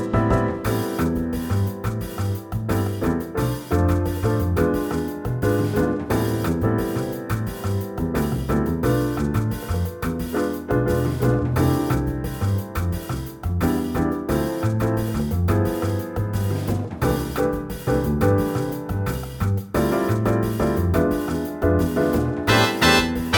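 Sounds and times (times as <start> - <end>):
Latin jazz band playing: 0.0 - 23.3
guitar playing Latin jazz: 22.5 - 23.3.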